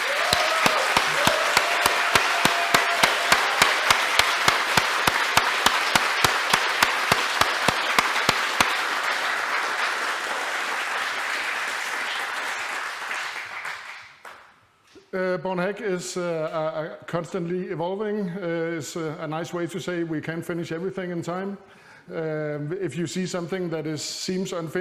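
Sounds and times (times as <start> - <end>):
audience applause: 0.0 - 14.5
speech: 15.4 - 24.7.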